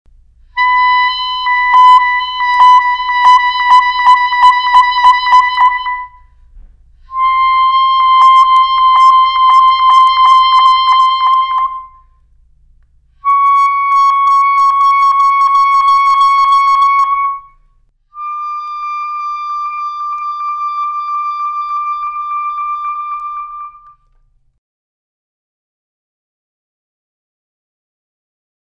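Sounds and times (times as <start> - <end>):
clarinet: 0.5 - 6.4, 7.0 - 12.2, 13.1 - 24.2.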